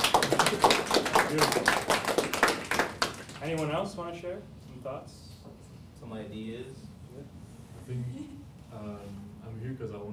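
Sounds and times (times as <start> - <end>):
audience clapping: 0.0 - 3.8
speech: 1.3 - 1.8, 3.4 - 5.2, 6.0 - 10.1.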